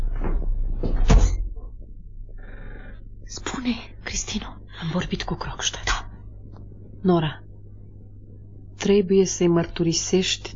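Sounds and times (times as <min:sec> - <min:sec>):
door opening: 0:00.0 - 0:01.7
speech: 0:03.6 - 0:06.0, 0:07.0 - 0:07.4, 0:08.8 - 0:10.5.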